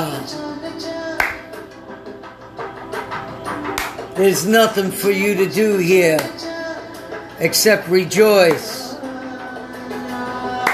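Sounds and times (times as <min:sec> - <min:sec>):
hands clapping: 0:01.2 - 0:01.7, 0:03.1 - 0:04.2, 0:06.1 - 0:06.5, 0:08.4 - 0:08.9, 0:10.6 - 0:10.7
speech: 0:04.2 - 0:06.4, 0:07.4 - 0:08.7.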